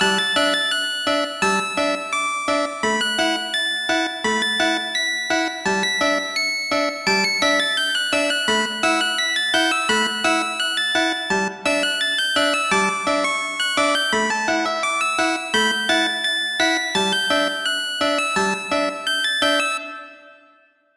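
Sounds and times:
music: 0.0 - 20.9.

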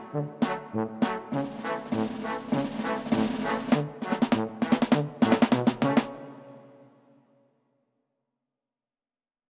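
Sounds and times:
march two-step music: 0.0 - 6.8.

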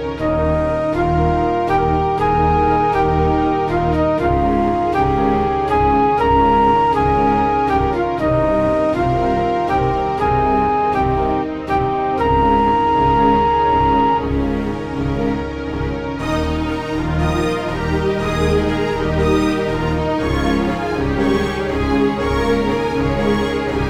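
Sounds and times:
cinematic ending music: 0.2 - 23.8.

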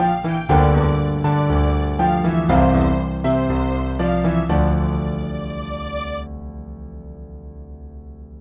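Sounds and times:
cinematic adventure soundtrack: 0.0 - 6.3.

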